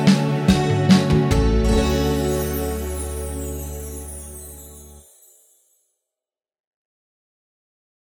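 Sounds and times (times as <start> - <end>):
music beat: 0.0 - 5.1.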